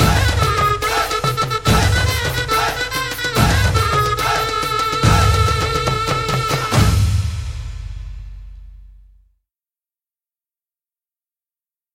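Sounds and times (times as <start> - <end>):
instrumental music for Holi: 0.0 - 9.0.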